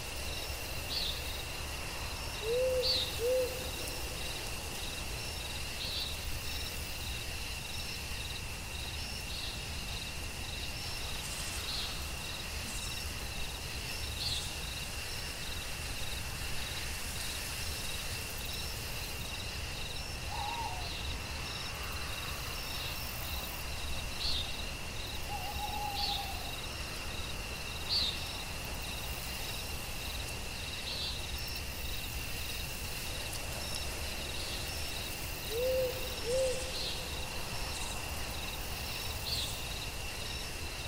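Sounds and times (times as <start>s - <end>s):
forest night ambience: 0.0s - 40.8s.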